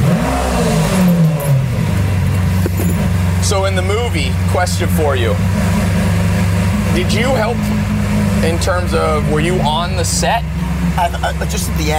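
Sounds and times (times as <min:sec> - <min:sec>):
car engine revving as it is driven off: 0:00.0 - 0:11.9
speech: 0:03.7 - 0:05.9, 0:07.0 - 0:07.8, 0:08.4 - 0:11.9.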